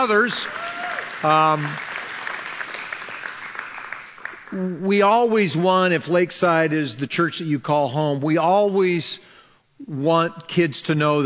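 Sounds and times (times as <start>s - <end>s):
speech: 0.0s - 0.6s, 1.2s - 1.9s, 4.5s - 11.2s
audience applause: 0.0s - 4.6s.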